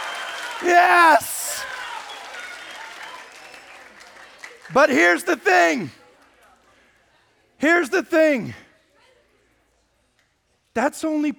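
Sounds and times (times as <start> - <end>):
audience applause: 0.0 - 5.2
speech: 0.6 - 1.4, 4.7 - 6.0, 7.6 - 8.6, 10.8 - 11.3.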